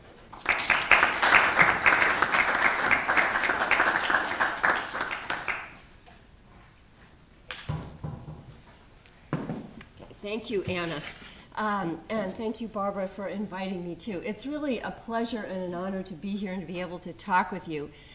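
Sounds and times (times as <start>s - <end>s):
audience applause welcoming a speaker to a talk on Christian peacebuilding: 0.3s - 5.8s
speech: 10.3s - 18.1s.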